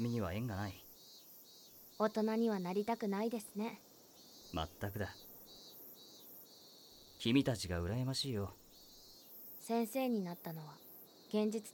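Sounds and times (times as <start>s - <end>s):
speech: 0.0s - 0.9s, 2.0s - 3.9s, 4.5s - 5.2s, 7.2s - 8.6s, 9.7s - 11.7s
cicadas chirping in summer: 0.0s - 11.7s.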